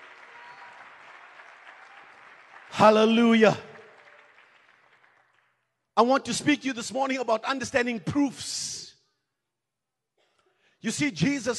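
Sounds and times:
audience clapping hands: 0:00.0 - 0:06.1
speech: 0:02.7 - 0:03.7, 0:06.0 - 0:08.8, 0:10.8 - 0:11.5.

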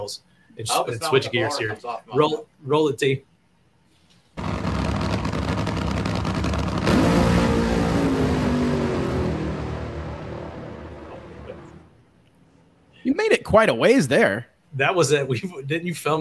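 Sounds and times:
speech: 0:00.0 - 0:03.3, 0:13.2 - 0:16.2
Studebaker car engine revving: 0:04.4 - 0:11.9.

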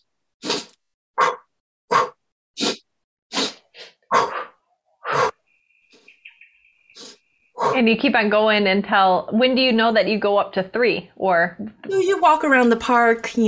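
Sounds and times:
short sharp sniffing inhales through the nose: 0:00.4 - 0:05.4
faint high chirping sound: 0:05.1 - 0:07.8
speech: 0:07.8 - 0:13.4.

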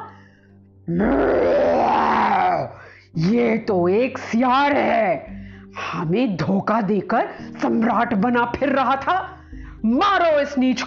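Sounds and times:
speech: 0:00.9 - 0:01.4, 0:03.1 - 0:10.8
voice imitating lion and tiger growling: 0:00.9 - 0:02.8.

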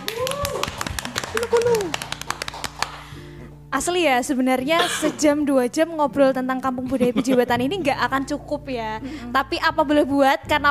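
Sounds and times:
hand clapping: 0:00.0 - 0:03.2
speech: 0:01.5 - 0:02.0, 0:03.7 - 0:10.6.

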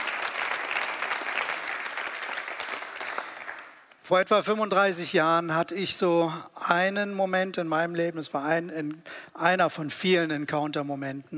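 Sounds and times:
applause: 0:00.0 - 0:04.0
speech: 0:04.1 - 0:11.3.

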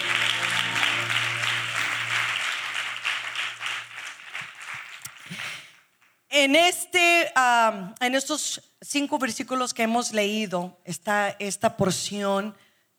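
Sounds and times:
audience applause: 0:00.0 - 0:05.4
speech: 0:06.4 - 0:12.9.

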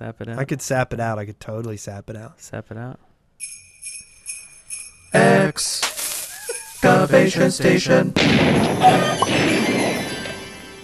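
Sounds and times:
speech: 0:00.0 - 0:03.6, 0:05.1 - 0:05.9, 0:06.8 - 0:10.1
explosion sound effect: 0:08.2 - 0:10.3.

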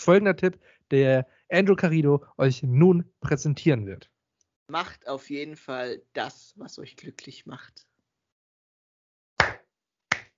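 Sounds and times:
speech: 0:00.0 - 0:04.1, 0:04.7 - 0:07.9
applause: 0:09.4 - 0:10.3.

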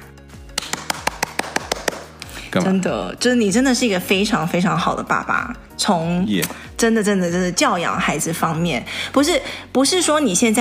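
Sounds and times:
hand clapping: 0:00.3 - 0:02.4
speech: 0:02.5 - 0:10.6.

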